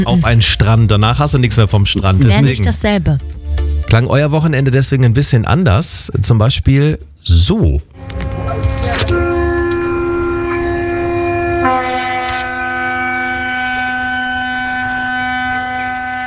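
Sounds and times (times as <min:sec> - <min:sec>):
speech: 0:00.0 - 0:08.2
ship horn in a harbor: 0:08.0 - 0:16.2.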